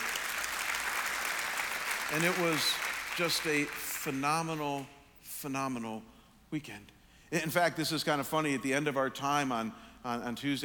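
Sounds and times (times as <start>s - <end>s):
audience applause: 0.0s - 4.2s
speech: 2.1s - 10.6s.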